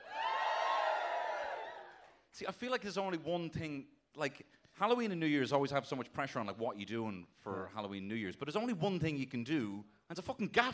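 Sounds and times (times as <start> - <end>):
audience cheering: 0.0 - 2.2
speech: 2.4 - 10.7.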